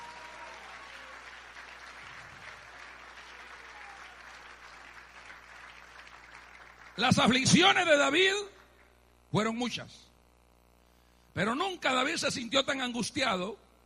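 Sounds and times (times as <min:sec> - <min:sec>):
large audience applause: 0:00.0 - 0:07.5
speech: 0:07.0 - 0:08.5, 0:09.3 - 0:10.1, 0:11.4 - 0:13.6.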